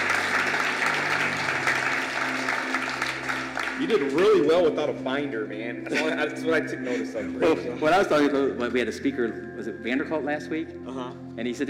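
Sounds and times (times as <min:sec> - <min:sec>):
audience clapping: 0:00.0 - 0:04.7
speech: 0:03.8 - 0:11.6.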